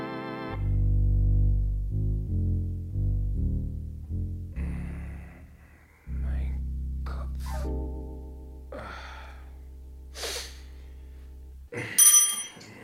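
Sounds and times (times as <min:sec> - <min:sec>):
low steady hum: 0:00.6 - 0:11.8
bell ringing to summon a servant: 0:12.0 - 0:12.7.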